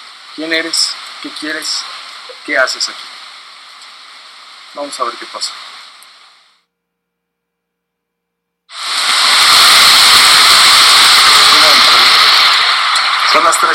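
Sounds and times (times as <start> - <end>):
heavy rain falling in an alley: 0.0 - 6.3, 8.7 - 13.7
speech: 0.4 - 3.1, 4.7 - 5.7.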